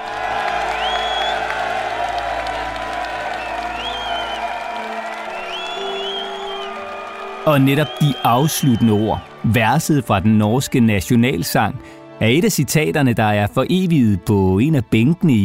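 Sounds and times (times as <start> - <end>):
large crowd cheering: 0.0 - 11.0
people whistling: 0.6 - 1.6, 3.3 - 10.6
speech: 7.4 - 15.4.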